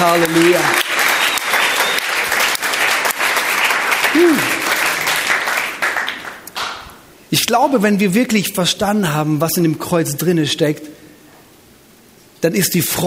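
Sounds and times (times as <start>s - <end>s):
audience applause: 0.0s - 6.9s
speech: 0.1s - 0.9s, 7.3s - 11.0s, 12.4s - 13.0s.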